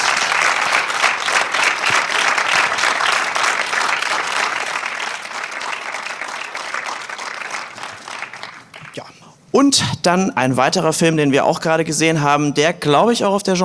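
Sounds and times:
crowd applauding: 0.0 - 9.0
speech: 9.6 - 13.6.

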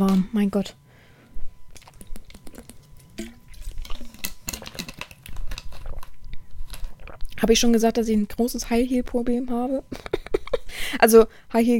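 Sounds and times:
speech: 0.0 - 0.8, 7.4 - 10.2, 10.9 - 11.7
person drinking a sip of water: 1.4 - 7.5.

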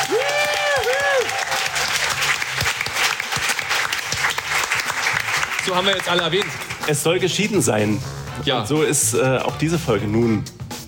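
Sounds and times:
audience applause: 0.0 - 7.1
speech: 5.7 - 10.6.

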